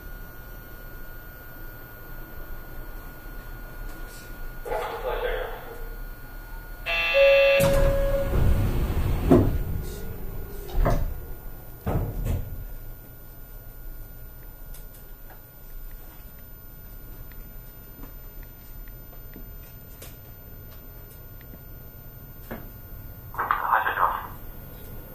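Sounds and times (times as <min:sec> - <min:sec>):
faint whine: 0:00.4 - 0:25.1
brief tone: 0:06.9 - 0:11.6
Astram Line 6000 train rumble in Hiroshima: 0:06.9 - 0:12.9.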